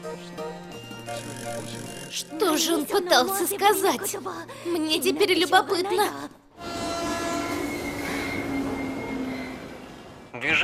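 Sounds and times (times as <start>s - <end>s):
speech: 0.1s - 6.4s, 10.4s - 10.6s
train passing: 6.5s - 10.6s.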